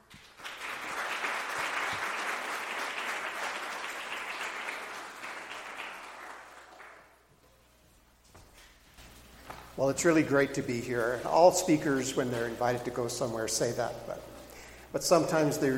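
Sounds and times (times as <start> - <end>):
audience applause: 0.0 - 7.3
speech: 9.8 - 14.3, 14.9 - 15.7.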